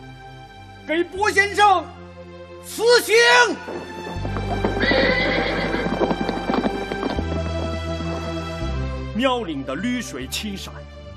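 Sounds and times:
speech: 0.9 - 2.0, 2.6 - 4.6, 9.2 - 10.9
hooves clip-clopping: 3.1 - 9.1
low rumbling background: 3.4 - 9.2
war horse whinnying: 3.6 - 8.3.

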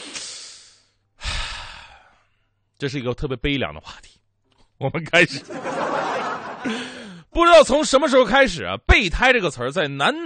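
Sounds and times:
deep breath from a stand-up comedy host: 0.0 - 2.6, 6.6 - 7.3
speech: 2.8 - 4.2, 4.8 - 5.9, 6.6 - 10.2
laughter: 5.3 - 7.2.

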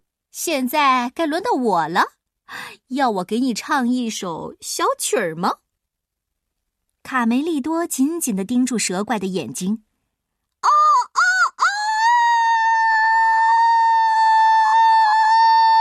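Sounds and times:
speech: 0.4 - 5.6, 7.0 - 9.9
young rooster crowing: 10.6 - 15.7.

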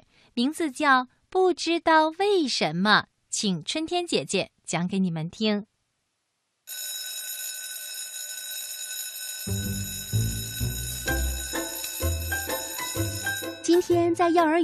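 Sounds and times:
speech: 0.4 - 5.7, 13.8 - 14.6
school class bell ringing: 6.7 - 14.0.

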